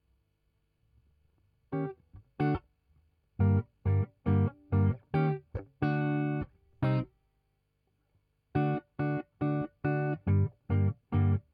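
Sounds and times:
guitar: 1.7s - 2.7s, 3.4s - 7.2s, 8.5s - 11.5s.

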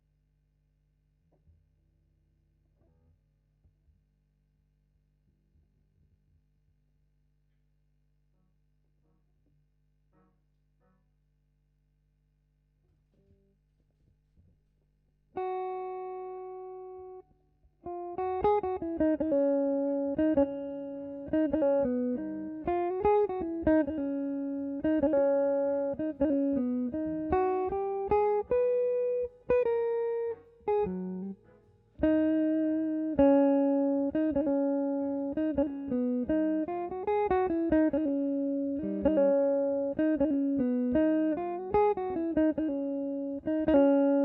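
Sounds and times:
guitar: 15.3s - 44.2s.

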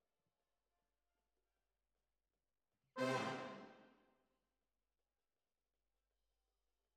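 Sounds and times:
horns: 3.0s - 3.8s.

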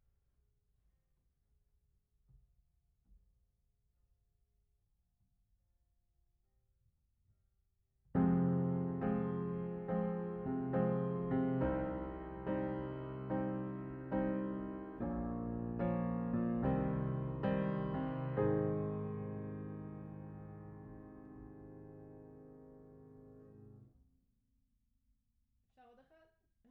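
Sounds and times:
piano: 8.1s - 23.9s.

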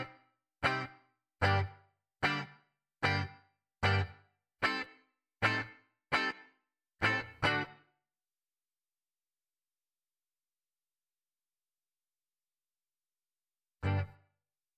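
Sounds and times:
ragtime guitar: 0.0s - 6.4s, 7.0s - 7.8s, 13.8s - 14.1s.

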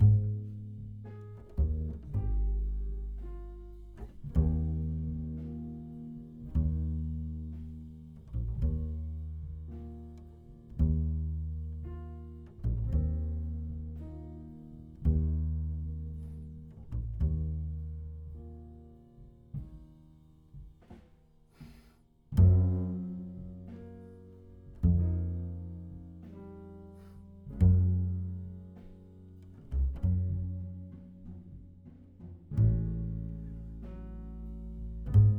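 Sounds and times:
bass: 0.0s - 35.3s.

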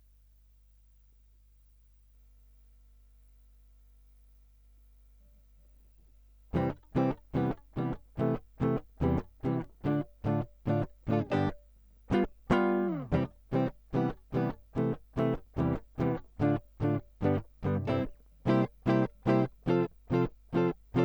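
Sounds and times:
guitar line: 6.5s - 21.0s.

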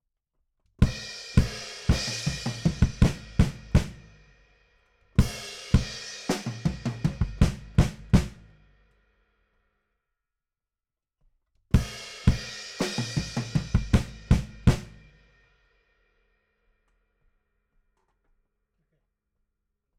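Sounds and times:
bass drum: 0.8s - 4.2s, 5.2s - 8.6s, 11.8s - 15.2s.

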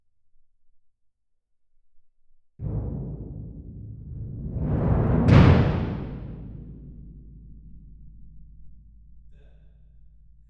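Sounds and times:
percussion: 2.6s - 10.4s.

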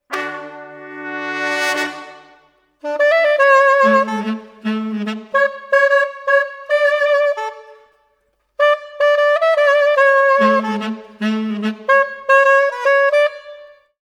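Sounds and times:
brass: 0.0s - 7.9s, 8.6s - 13.9s.

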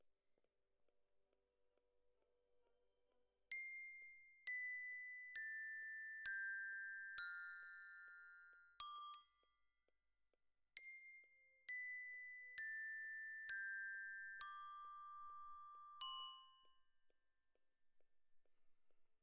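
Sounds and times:
glockenspiel: 3.5s - 9.4s, 10.8s - 16.9s.

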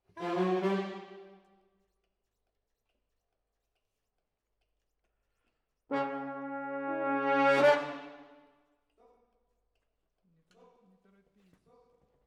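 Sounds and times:
horns playing: 0.0s - 1.4s, 5.9s - 8.4s.

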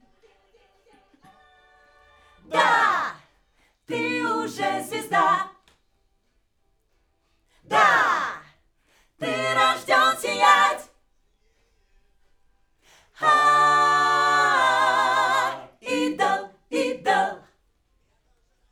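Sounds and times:
backing vocals on AKG microphone: 2.4s - 3.2s, 3.9s - 5.5s, 7.7s - 8.5s, 9.2s - 10.9s, 13.2s - 17.4s.

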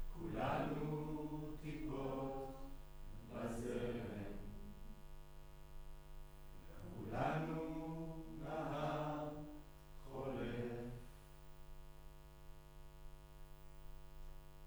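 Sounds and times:
choir singing in room: 0.1s - 4.8s, 6.6s - 11.1s.

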